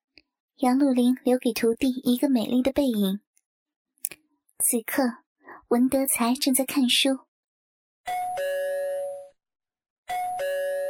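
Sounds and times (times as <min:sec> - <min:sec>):
speech: 0:00.6 - 0:03.3, 0:04.6 - 0:07.3
front door doorbell two-note ding-dong chime: 0:08.1 - 0:09.4, 0:10.1 - 0:10.8.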